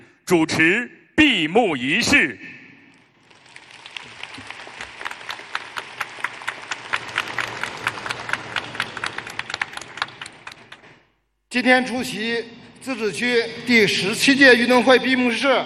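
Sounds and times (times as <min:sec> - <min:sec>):
speech: 0:00.3 - 0:02.6, 0:11.6 - 0:15.6
warm audience applause: 0:03.0 - 0:11.0.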